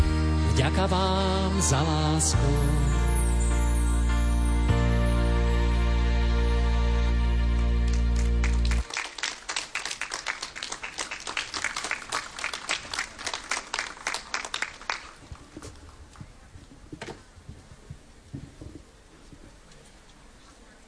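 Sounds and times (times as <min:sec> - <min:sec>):
sustained musical chord: 0:00.2 - 0:08.8
speech: 0:00.6 - 0:03.0
audience applause: 0:07.7 - 0:15.6.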